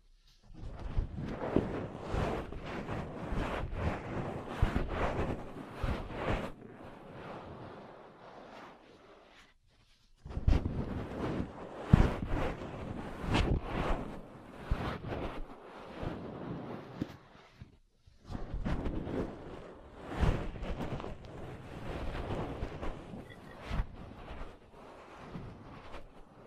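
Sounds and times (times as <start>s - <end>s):
ear cleaning and massage rustling and tapping on a microphone: 0.0s - 6.6s, 9.7s - 16.2s, 16.9s - 19.4s, 20.2s - 24.6s.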